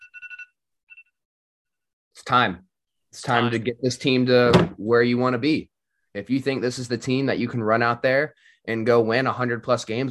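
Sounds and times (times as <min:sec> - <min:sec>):
electronic alarm ringing: 0:00.0 - 0:01.2
speech: 0:02.2 - 0:10.0.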